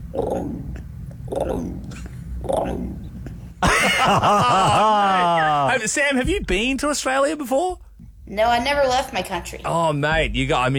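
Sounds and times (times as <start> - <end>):
person imitating an emu call: 0.0 - 3.1
loud wavering vocal sounds: 0.0 - 3.3
speech: 0.1 - 3.0, 4.0 - 10.7
laughter: 3.6 - 5.8.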